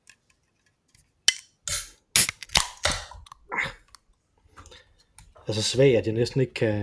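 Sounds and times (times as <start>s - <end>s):
beer can being opened: 1.3s - 3.4s
speech: 5.5s - 6.8s.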